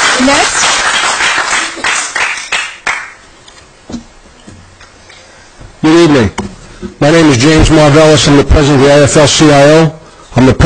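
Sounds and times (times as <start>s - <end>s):
audience clapping: 0.0s - 3.2s
speech: 0.2s - 0.7s, 6.1s - 6.4s, 7.0s - 10.6s.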